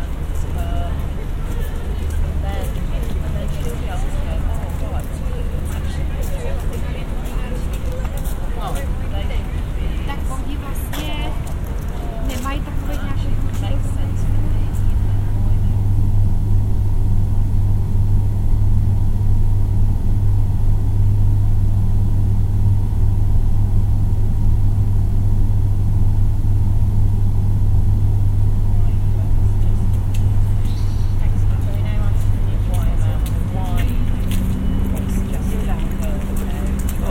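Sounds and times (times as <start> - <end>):
voices: 0.0 - 16.6, 28.4 - 37.0
passing traffic: 0.0 - 21.1, 27.6 - 37.0
steady low engine drone: 0.0 - 37.0.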